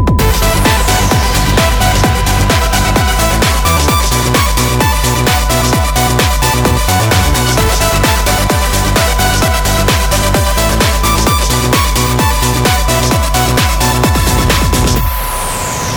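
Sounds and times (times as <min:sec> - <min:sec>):
air groove music: 0:00.1 - 0:15.8.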